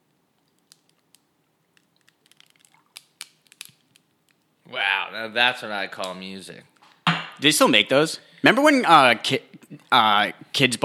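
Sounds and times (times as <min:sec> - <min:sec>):
coffee being poured: 0:01.7 - 0:03.1
speech: 0:04.7 - 0:06.7, 0:07.4 - 0:10.8.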